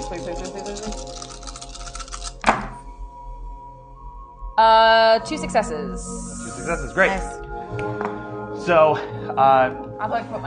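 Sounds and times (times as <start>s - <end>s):
dice rattling in a cup or hand and landing: 0.0s - 2.4s
speech: 0.1s - 1.4s, 4.6s - 8.1s, 8.7s - 10.4s.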